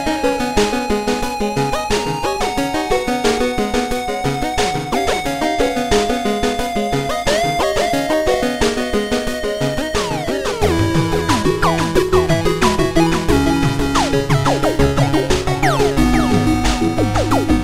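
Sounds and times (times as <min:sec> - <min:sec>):
8-bit music: 0:00.0 - 0:17.6.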